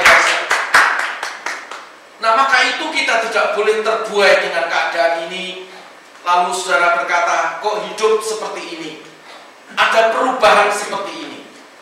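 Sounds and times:
applause, hand clapping: 0:00.0 - 0:01.9
speech: 0:03.0 - 0:09.1, 0:09.7 - 0:11.4.

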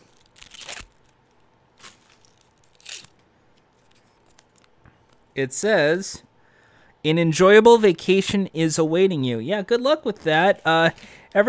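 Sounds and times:
fortune cookie being broken open: 0:00.0 - 0:04.8
speech: 0:05.4 - 0:06.3, 0:07.0 - 0:11.4.

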